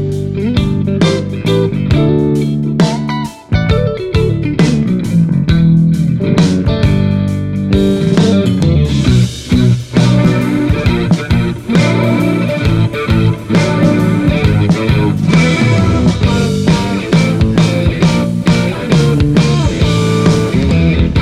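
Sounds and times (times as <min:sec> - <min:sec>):
Stratocaster electric guitar through Celestion Greenback G12M speaker: 0:00.0 - 0:21.1.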